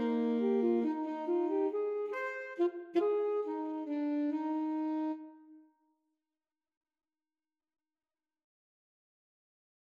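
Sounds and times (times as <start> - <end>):
alto saxophone trio: 0.0 - 5.3.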